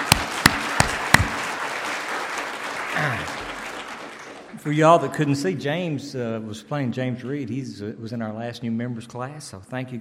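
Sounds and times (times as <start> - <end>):
audience applauding: 0.0 - 5.3
speech: 4.6 - 9.9.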